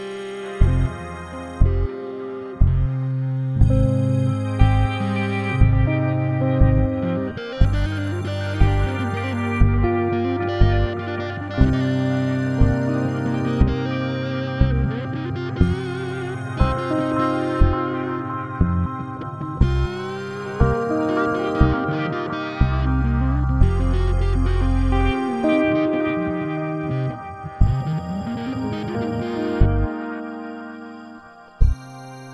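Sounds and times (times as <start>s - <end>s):
electric guitar solo chords in C at 120 BPM: 0.0s - 32.3s.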